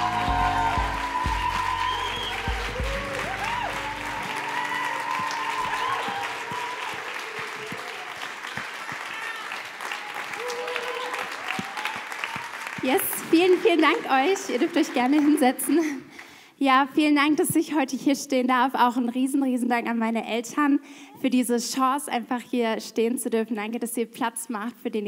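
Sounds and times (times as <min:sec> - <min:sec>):
cheers and voices mixed into the clapping: 0:00.0 - 0:15.4
warm sustained audience applause: 0:00.0 - 0:16.1
speech: 0:12.9 - 0:25.0.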